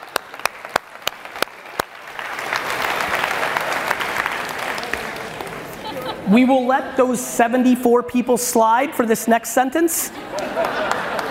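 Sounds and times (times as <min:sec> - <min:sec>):
audience applause: 0:00.0 - 0:06.2, 0:10.2 - 0:11.3
laughter: 0:04.8 - 0:06.8, 0:10.0 - 0:11.3
speech: 0:06.3 - 0:10.7.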